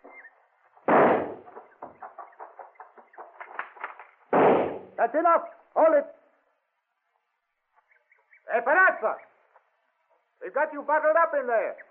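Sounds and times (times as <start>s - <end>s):
faint rhythmic gunfire pops: 0.8s - 5.0s
loud gunshot fired at a tunnel: 0.9s - 1.5s, 4.3s - 5.0s
speech: 5.0s - 6.2s, 8.6s - 9.3s, 10.4s - 11.8s.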